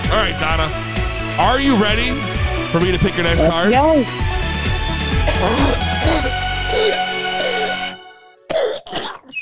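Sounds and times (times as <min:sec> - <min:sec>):
speech: 0:00.1 - 0:00.8, 0:01.4 - 0:04.2, 0:05.4 - 0:07.0
person coughing: 0:05.2 - 0:07.8, 0:08.5 - 0:09.4.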